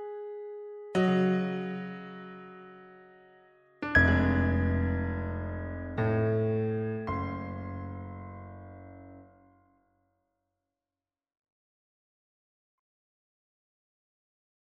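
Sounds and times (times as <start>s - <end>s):
piano: 0.0s - 9.8s.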